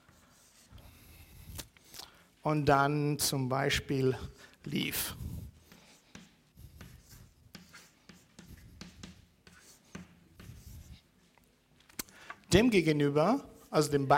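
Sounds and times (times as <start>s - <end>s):
handwriting on paper writing a transcription: 0.0s - 1.2s, 4.6s - 11.1s
speech: 2.4s - 5.3s, 12.5s - 14.1s.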